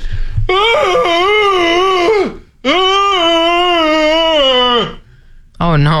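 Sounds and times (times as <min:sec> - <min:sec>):
person imitating a loud dog's wail: 0:00.5 - 0:05.0.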